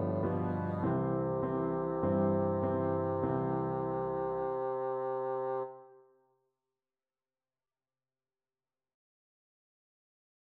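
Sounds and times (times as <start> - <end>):
bassoon: 0.0 - 5.9.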